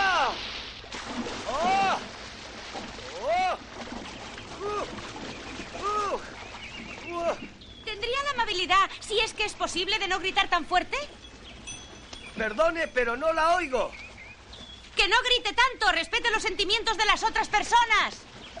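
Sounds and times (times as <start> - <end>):
person jumping into swimming pool splash: 0.0 - 7.5
speech: 9.0 - 11.2, 12.4 - 14.0, 15.0 - 18.2.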